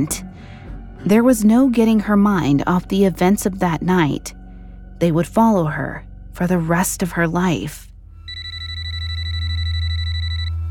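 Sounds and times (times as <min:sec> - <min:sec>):
speech: 0:00.0 - 0:00.3, 0:01.0 - 0:04.4, 0:05.0 - 0:07.9
low hum: 0:00.0 - 0:10.7
telephone ringing: 0:08.3 - 0:10.7.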